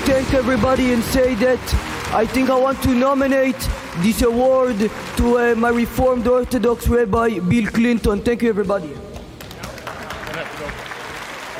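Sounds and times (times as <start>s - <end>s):
reserved confused audience applause: 0.0s - 6.8s, 9.1s - 11.5s
speech: 0.2s - 9.1s.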